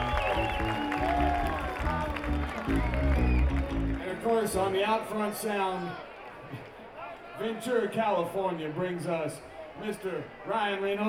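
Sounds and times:
ongoing music with a steady beat and sustained tones: 0:00.0 - 0:04.0
audience applause during band introductions at a concert: 0:00.0 - 0:07.2
speech: 0:04.4 - 0:06.1, 0:07.4 - 0:11.0.

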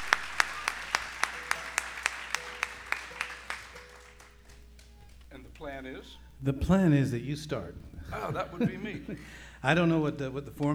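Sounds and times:
audience applause welcoming performers to a stage: 0:00.0 - 0:06.1
speech: 0:05.6 - 0:10.7
laughter: 0:07.5 - 0:10.7.

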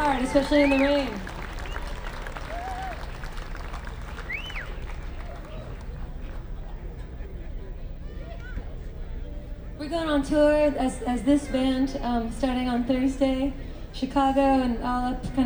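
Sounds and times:
audience applause for the crew: 0:00.0 - 0:07.0
speech: 0:00.1 - 0:01.3, 0:09.9 - 0:15.4.

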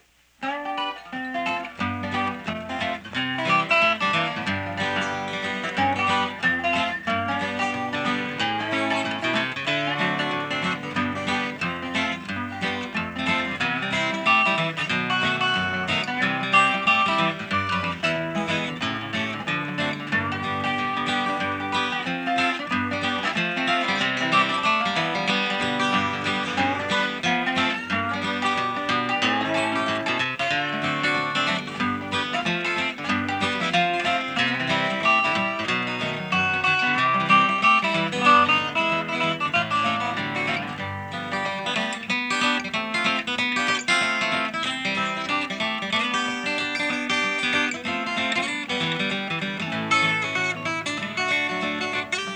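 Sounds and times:
instrumental music: 0:00.0 - 0:52.3.

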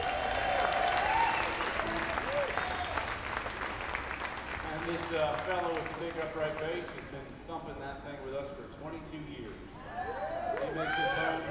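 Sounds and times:
audience applause welcoming a musician: 0:00.0 - 0:07.1, 0:09.9 - 0:11.5
speech: 0:04.9 - 0:11.5.

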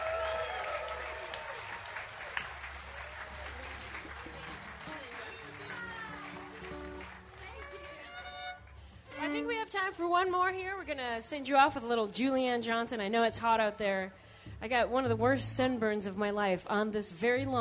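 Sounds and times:
audience shouting at an outdoor concert: 0:00.0 - 0:01.5
audience applause at an outdoor concert on a lawn: 0:00.0 - 0:08.9
speech: 0:09.9 - 0:17.5.

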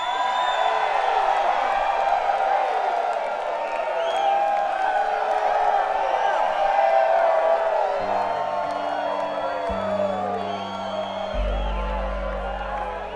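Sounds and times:
crowd howling and cheering: 0:00.0 - 0:13.1.

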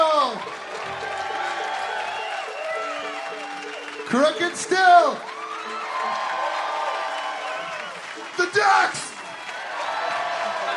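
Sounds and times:
crowd clapping at a music event: 0:00.0 - 0:10.7
whoops and shouting voices: 0:00.9 - 0:03.9, 0:04.9 - 0:10.7
speech: 0:04.1 - 0:05.4.

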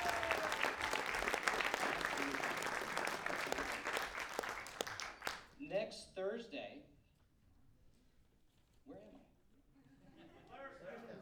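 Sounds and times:
audience applause: 0:00.0 - 0:05.5.

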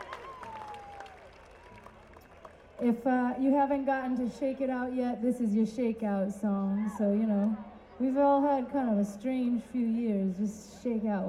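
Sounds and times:
crowd round of applause: 0:00.0 - 0:03.0
speech: 0:02.8 - 0:11.2.

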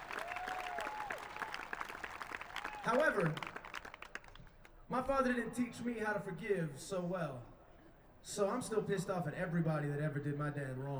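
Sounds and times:
audience applause at a live show: 0:00.0 - 0:04.5
speech: 0:02.8 - 0:03.5, 0:04.9 - 0:07.5, 0:08.2 - 0:10.9.

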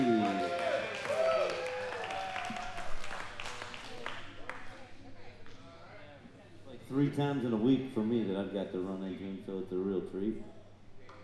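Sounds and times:
audience applause: 0:00.0 - 0:04.6
speech: 0:07.1 - 0:10.6.

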